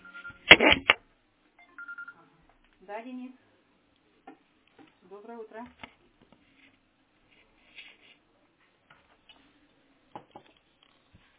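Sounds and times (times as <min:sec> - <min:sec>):
mobile phone electronic ringtone beeps for an incoming call: 0:00.0 - 0:00.5, 0:01.6 - 0:02.2
mobile phone buzzing burst: 0:00.0 - 0:01.0
speech: 0:02.9 - 0:03.5, 0:05.1 - 0:05.9.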